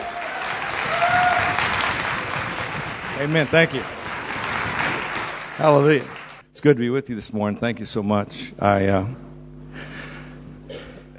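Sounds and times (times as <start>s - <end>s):
audience applauding a speaker: 0.0s - 6.5s
speech: 3.2s - 4.0s, 5.6s - 9.2s.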